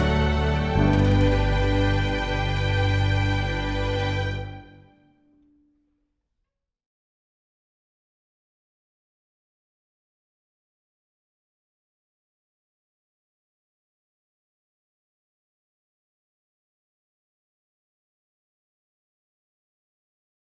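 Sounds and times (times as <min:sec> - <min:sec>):
backing track: 0:00.0 - 0:05.0.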